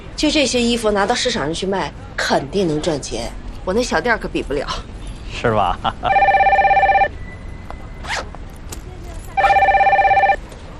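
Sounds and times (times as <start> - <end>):
speech: 0.2 - 6.4
telephone ringing: 6.1 - 7.2, 9.4 - 10.5.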